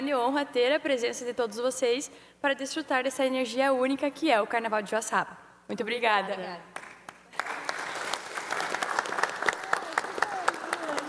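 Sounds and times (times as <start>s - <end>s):
speech: 0.1s - 6.8s
audience applause in legislative chamber: 7.3s - 11.0s.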